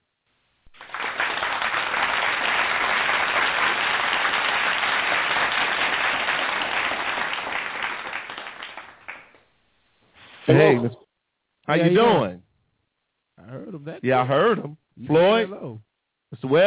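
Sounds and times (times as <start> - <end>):
audience applauding an evening's guest being welcomed: 0.7 - 9.5
speech: 10.5 - 11.0, 11.7 - 12.4, 13.7 - 16.6.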